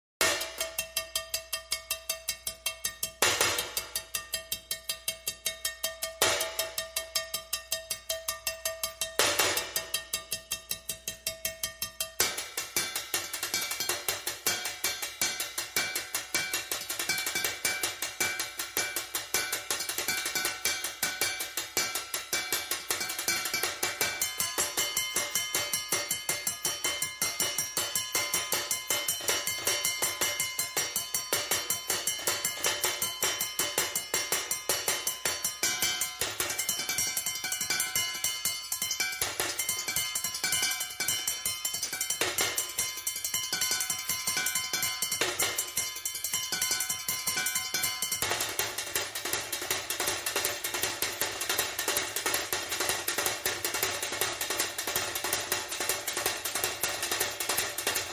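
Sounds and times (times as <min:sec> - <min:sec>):
high drums: 0:00.2 - 0:58.1.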